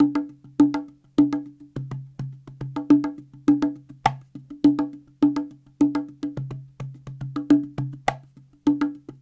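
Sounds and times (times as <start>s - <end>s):
cajon: 0.0s - 9.2s.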